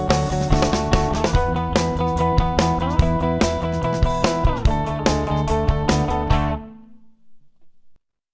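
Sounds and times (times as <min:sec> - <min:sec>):
indie rock music: 0:00.0 - 0:07.0.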